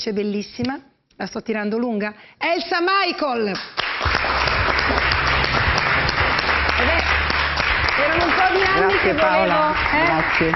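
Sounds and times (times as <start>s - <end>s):
speech: 0.0s - 4.4s, 8.2s - 10.5s
audience applause: 3.8s - 10.5s.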